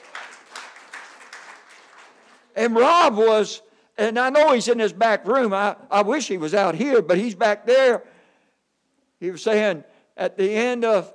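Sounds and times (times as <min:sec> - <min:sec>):
church congregation hand clapping: 0:00.0 - 0:03.1
speech: 0:02.6 - 0:08.1, 0:09.2 - 0:11.1.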